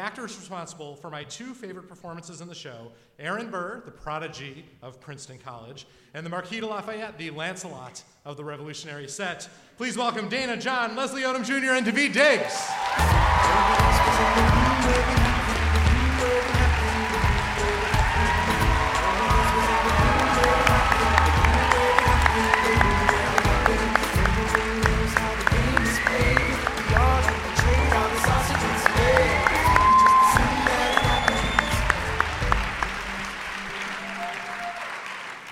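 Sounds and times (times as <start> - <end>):
speech: 0.1 - 15.4
audience applause and cheering: 12.3 - 35.4.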